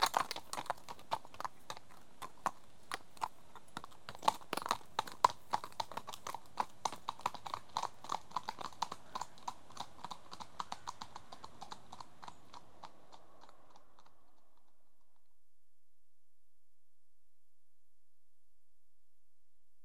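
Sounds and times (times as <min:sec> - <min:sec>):
horse hooves clip-clopping: 0:00.0 - 0:15.3.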